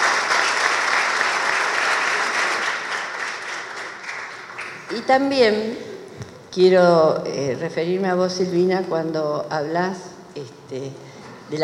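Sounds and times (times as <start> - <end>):
audience applause: 0.0 - 4.9
speech: 5.0 - 5.9, 6.6 - 11.6.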